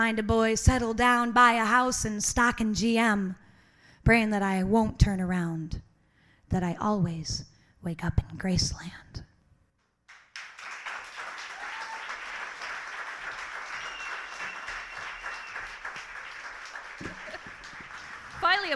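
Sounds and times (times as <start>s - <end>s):
speech: 0.0s - 3.4s, 4.0s - 5.9s, 6.5s - 9.3s, 18.4s - 18.7s
audience clapping after a poem: 10.1s - 18.7s.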